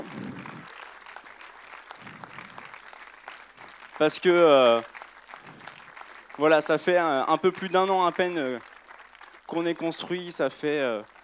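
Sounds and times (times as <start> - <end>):
audience applause: 0.0 - 11.2
speech: 4.0 - 5.0, 6.4 - 8.7, 9.5 - 11.2.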